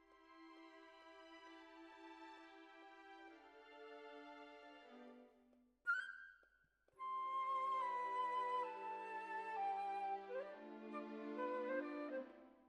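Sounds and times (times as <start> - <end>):
clarinet: 7.0 - 12.6.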